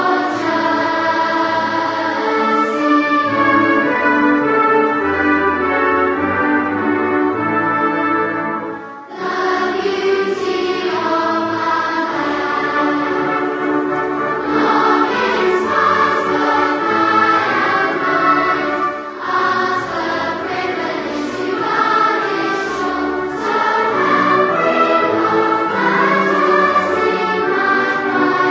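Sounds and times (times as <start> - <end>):
string choir: 0.0 - 28.4.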